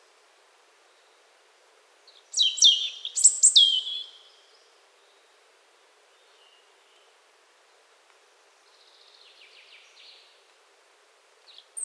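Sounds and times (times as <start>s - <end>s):
European robin singing: 2.4s - 4.3s.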